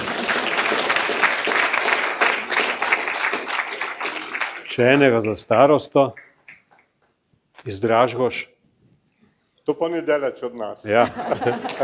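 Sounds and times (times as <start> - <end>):
audience applauding a gentleman during a medal ceremony: 0.0 - 5.4, 11.4 - 11.8
speech: 4.8 - 6.2, 7.6 - 8.5, 9.6 - 11.8
laughter: 10.9 - 11.8.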